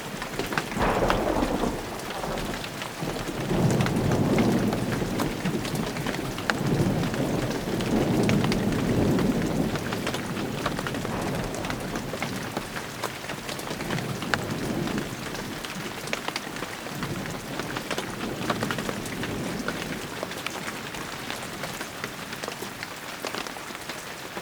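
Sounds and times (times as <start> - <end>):
rolling thunder: 0.0 - 22.4
rain: 0.0 - 24.3.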